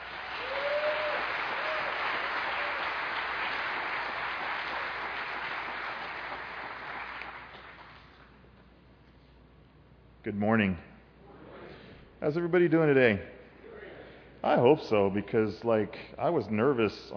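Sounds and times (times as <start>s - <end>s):
church audience applause welcoming a pastor: 0.0s - 8.1s
speech: 10.3s - 10.9s, 12.2s - 13.3s, 14.4s - 17.1s.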